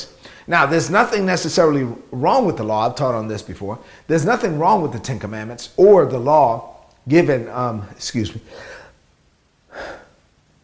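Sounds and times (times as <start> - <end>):
speech: 0.0 - 8.8
stifled sneeze, a sharp intake of breath: 0.2 - 0.5, 8.5 - 9.0, 9.7 - 10.3
breathy exhale: 8.5 - 9.0, 9.7 - 10.3.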